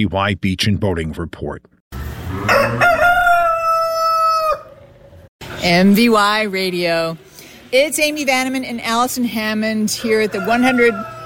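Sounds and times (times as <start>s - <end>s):
speech: 0.0s - 3.0s, 5.6s - 11.2s
rooster crowing in a fair barn: 2.3s - 5.0s, 9.9s - 11.2s.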